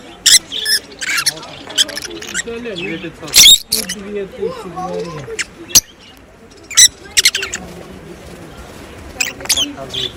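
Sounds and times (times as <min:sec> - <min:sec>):
rosy-faced lovebird chattering: 0:00.2 - 0:04.2, 0:04.8 - 0:07.7, 0:09.2 - 0:10.1.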